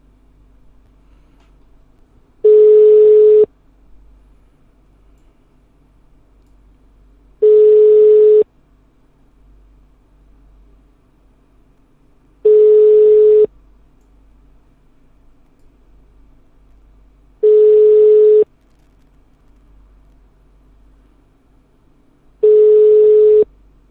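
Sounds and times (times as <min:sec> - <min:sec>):
telephone ringback tone on an unanswered call: 0:02.5 - 0:03.5, 0:07.4 - 0:08.4, 0:12.5 - 0:13.5, 0:17.4 - 0:18.4, 0:22.4 - 0:23.4.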